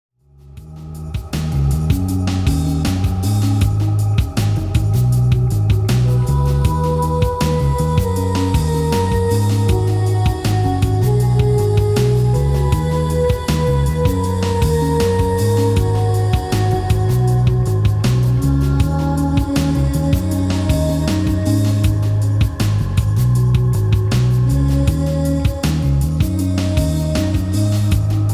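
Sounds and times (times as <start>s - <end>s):
trance dance music: 0.6s - 28.3s.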